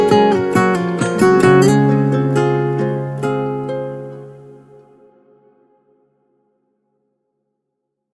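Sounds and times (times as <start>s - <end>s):
guitar: 0.0s - 5.9s.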